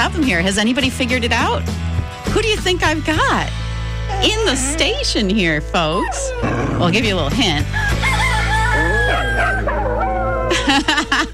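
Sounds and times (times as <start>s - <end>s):
speech: 0.2s - 8.0s, 10.6s - 11.3s
dog howling: 6.0s - 7.0s, 8.5s - 10.7s
rooster crowing: 7.8s - 10.6s
laughter: 8.7s - 11.3s.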